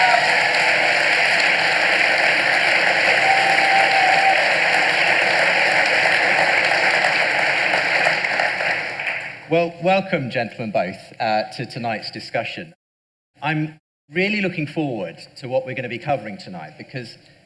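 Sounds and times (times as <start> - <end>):
audience applause: 0.0 - 9.5
speech: 9.5 - 12.8, 13.4 - 17.4.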